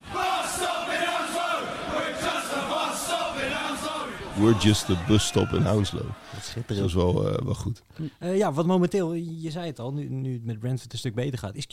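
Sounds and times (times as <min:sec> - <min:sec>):
football supporters chanting in unison: 0:00.0 - 0:06.8
speech: 0:04.4 - 0:11.7.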